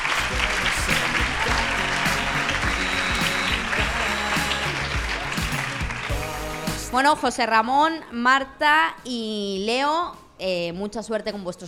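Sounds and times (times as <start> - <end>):
audience applause: 0.0 - 6.8
speech: 7.0 - 11.6.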